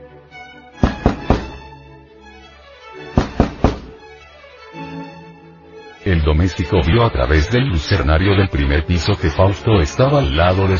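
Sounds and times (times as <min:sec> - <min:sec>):
knocking on a door: 0:00.8 - 0:01.6, 0:03.2 - 0:04.0
speech: 0:06.0 - 0:10.7.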